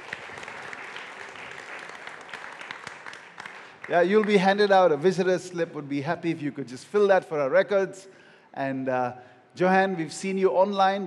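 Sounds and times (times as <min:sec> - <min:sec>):
congregation applause welcoming first-time visitors: 0:00.0 - 0:05.1
speech: 0:03.9 - 0:11.0.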